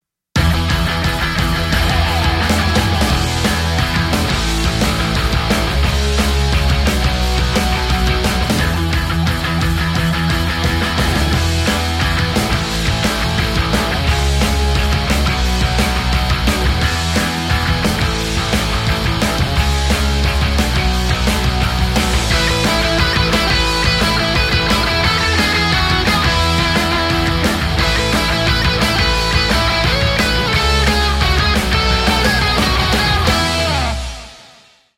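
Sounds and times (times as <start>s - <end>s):
pop punk ringtone: 0.4s - 34.2s.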